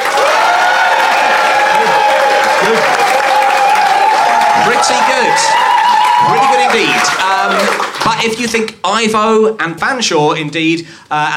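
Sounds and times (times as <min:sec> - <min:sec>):
crowd voices and cheering: 0:00.0 - 0:08.4
audience applause: 0:00.0 - 0:08.5
speech: 0:04.8 - 0:11.3.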